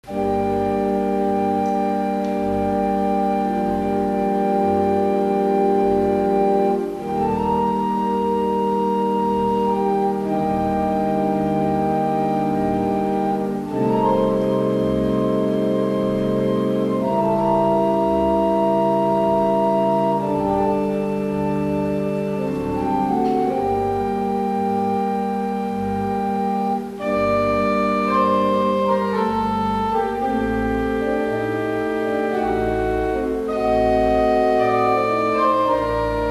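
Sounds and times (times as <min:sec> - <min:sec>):
slow classical piece in G minor: 0:00.0 - 0:36.2.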